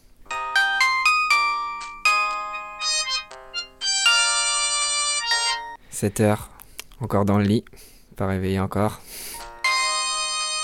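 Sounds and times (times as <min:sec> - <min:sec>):
alarm clock ringing with an electronic melody: 0:00.3 - 0:05.8, 0:09.4 - 0:10.6
speech: 0:06.0 - 0:09.2.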